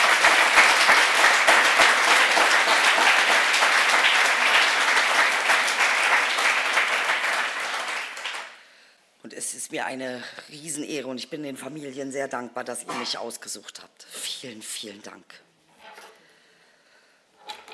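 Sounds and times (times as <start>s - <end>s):
audience applause: 0.0s - 8.6s
speech: 9.7s - 15.5s.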